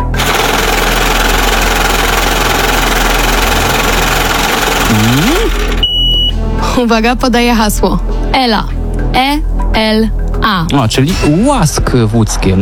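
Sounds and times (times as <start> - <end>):
lottery drawing machine running: 0.0 - 6.4
speech: 6.8 - 12.6.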